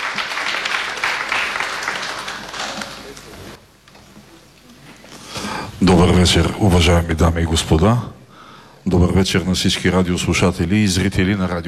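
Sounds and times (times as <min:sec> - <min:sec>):
sustained audience applause: 0:00.0 - 0:03.6
speech: 0:05.8 - 0:08.2, 0:08.8 - 0:11.6.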